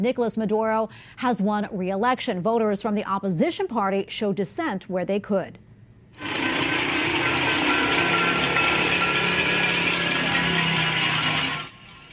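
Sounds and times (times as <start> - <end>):
speech: 0.0 - 6.4
pots and pans banged in protest: 6.2 - 12.1.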